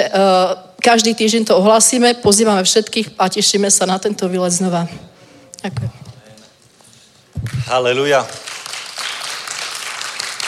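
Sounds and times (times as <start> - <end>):
speech: 0.0 - 6.1, 7.4 - 8.5
crowd applause: 7.7 - 10.4.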